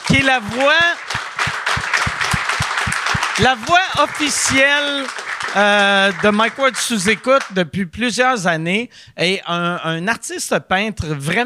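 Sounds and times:
audience applause: 0:00.0 - 0:07.6
speech: 0:00.1 - 0:01.1, 0:03.4 - 0:11.4.

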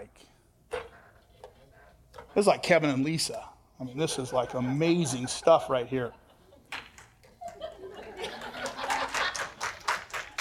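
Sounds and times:
speech: 0:02.4 - 0:06.8
soft chuckling and murmuring voices: 0:03.8 - 0:08.9
weak scattered clapping: 0:06.7 - 0:10.4.

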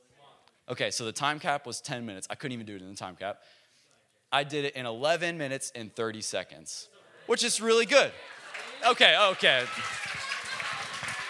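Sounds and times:
speech: 0:00.7 - 0:03.6, 0:04.3 - 0:10.3
audience applause: 0:08.3 - 0:11.2.

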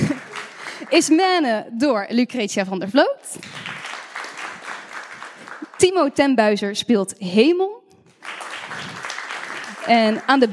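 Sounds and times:
laughter: 0:00.0 - 0:00.9
audience applause: 0:00.0 - 0:01.2, 0:03.4 - 0:05.8, 0:08.2 - 0:10.5
speech: 0:00.9 - 0:03.6, 0:05.8 - 0:07.8, 0:09.8 - 0:10.5.

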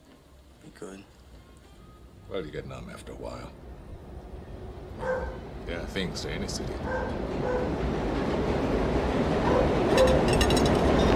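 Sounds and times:
speech: 0:00.7 - 0:01.2, 0:02.3 - 0:03.7, 0:05.0 - 0:08.0, 0:09.3 - 0:10.8
subway train rumbling past: 0:02.0 - 0:11.1.

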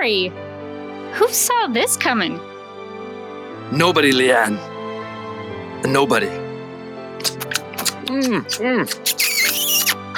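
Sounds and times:
speech: 0:00.0 - 0:00.4, 0:01.1 - 0:02.5, 0:03.7 - 0:04.7, 0:05.8 - 0:06.4, 0:08.1 - 0:09.3
eagle cry: 0:08.9 - 0:10.0.

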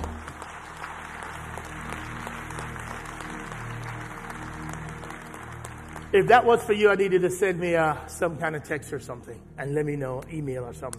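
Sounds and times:
audience applause: 0:00.0 - 0:07.3
speech: 0:06.1 - 0:10.9.

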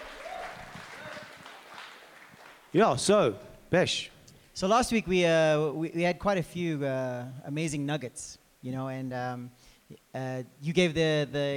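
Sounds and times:
voices cheering: 0:00.0 - 0:02.2
audience applause: 0:00.0 - 0:02.8
speech: 0:02.7 - 0:11.5.

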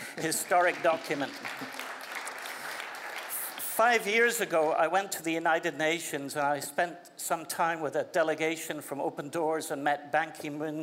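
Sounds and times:
speech: 0:00.2 - 0:01.8, 0:03.8 - 0:10.8
audience applause: 0:00.2 - 0:03.8.

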